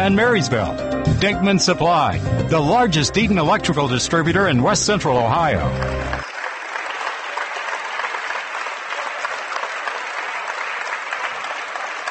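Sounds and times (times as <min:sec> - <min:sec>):
speech: 0:00.0 - 0:06.2
audience applause for departing seniors: 0:05.6 - 0:12.0.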